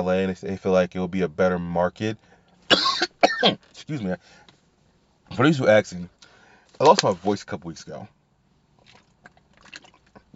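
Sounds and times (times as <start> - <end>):
speech: 0.0 - 4.4, 5.3 - 6.2, 6.8 - 8.2
small clicky gulps: 8.7 - 10.3
person sipping water: 8.8 - 10.3.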